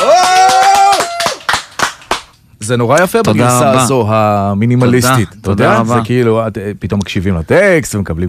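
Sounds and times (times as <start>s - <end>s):
audience clapping for a performer: 0.0s - 2.4s
speech: 2.7s - 8.2s.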